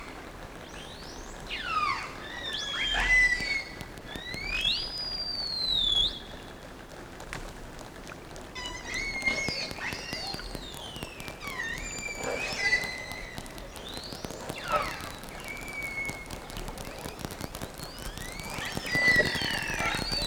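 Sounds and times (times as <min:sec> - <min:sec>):
whale whistles and squeals: 0:00.7 - 0:06.3, 0:08.6 - 0:20.2.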